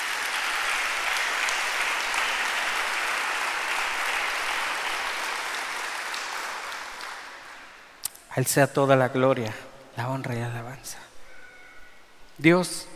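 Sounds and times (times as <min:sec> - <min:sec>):
crowd clapping: 0:00.0 - 0:07.9
speech: 0:08.4 - 0:11.1, 0:12.4 - 0:12.9.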